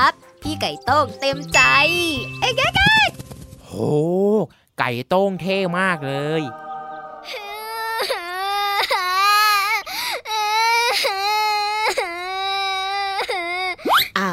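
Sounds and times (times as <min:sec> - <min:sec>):
speech: 0:00.0 - 0:06.6, 0:07.2 - 0:08.2
child crying loudly: 0:07.3 - 0:14.3.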